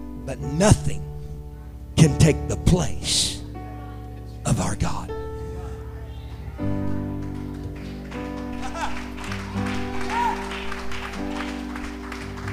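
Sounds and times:
speech: 0:00.3 - 0:01.1, 0:02.0 - 0:03.4, 0:04.5 - 0:05.2
audience clapping hands: 0:06.3 - 0:12.5.

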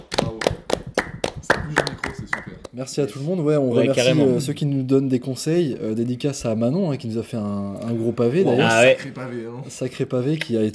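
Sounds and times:
hands clapping: 0:00.0 - 0:02.8
speech: 0:02.8 - 0:10.7.

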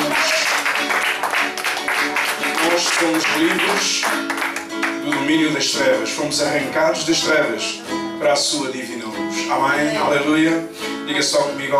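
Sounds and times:
audience clapping: 0:00.0 - 0:05.4
speech: 0:03.0 - 0:04.1, 0:05.0 - 0:11.7.

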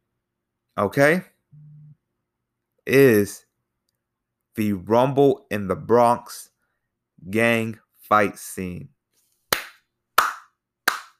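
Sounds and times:
speech: 0:00.8 - 0:01.3, 0:02.9 - 0:03.4, 0:04.6 - 0:06.5, 0:07.2 - 0:08.9
crowd hand clapping: 0:09.5 - 0:11.1.

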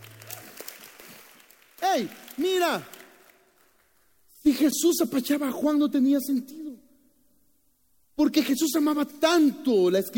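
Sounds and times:
audience applause: 0:00.0 - 0:03.8
speech: 0:01.9 - 0:03.0, 0:04.4 - 0:06.6, 0:08.2 - 0:10.1.

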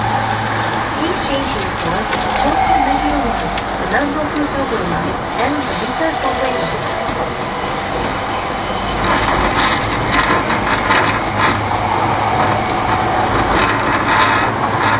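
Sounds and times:
E231 series Yamanote Line train running on the outer loop: 0:00.0 - 0:14.9
faint voices murmuring: 0:01.0 - 0:08.3
clicking, rattling mechanical sounds: 0:01.3 - 0:02.5, 0:09.0 - 0:14.9.

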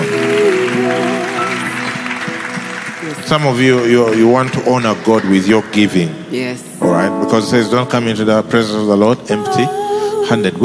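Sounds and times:
audience clapping: 0:00.0 - 0:06.2
speech: 0:03.3 - 0:10.6.

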